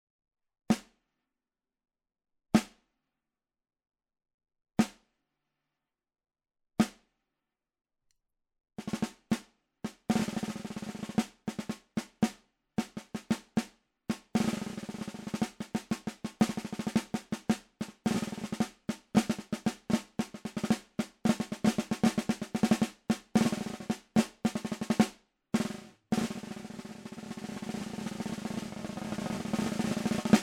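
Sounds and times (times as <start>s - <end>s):
snare drum: 0.7s - 1.0s, 2.6s - 2.8s, 4.8s - 5.0s, 6.8s - 7.0s, 8.8s - 30.4s.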